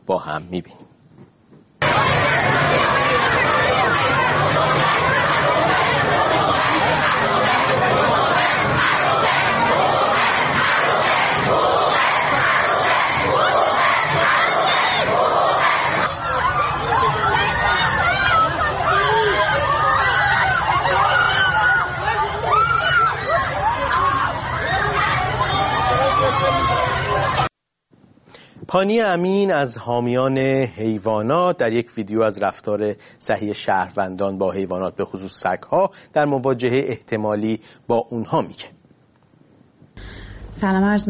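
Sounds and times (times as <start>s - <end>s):
speech: 0.1s - 0.9s, 28.7s - 38.8s, 40.6s - 41.0s
loud protest crowd chanting and shouting in unison: 1.8s - 22.5s
dense crowd babble: 1.8s - 27.5s.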